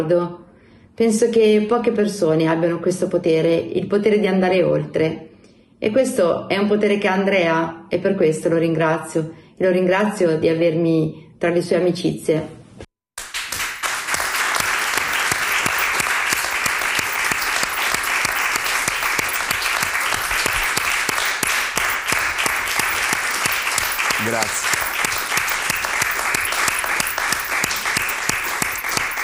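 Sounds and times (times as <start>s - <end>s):
speech: 0.0s - 12.6s
audience applause: 13.2s - 29.2s.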